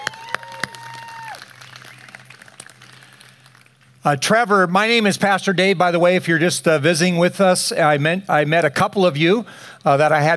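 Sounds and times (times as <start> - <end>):
church congregation clapping during a service: 0.0 - 3.9
speech: 4.0 - 10.3.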